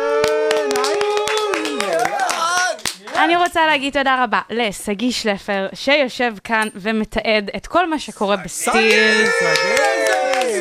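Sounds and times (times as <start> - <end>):
audience clapping: 0.0 - 3.6, 8.7 - 10.5
speech: 3.4 - 10.5.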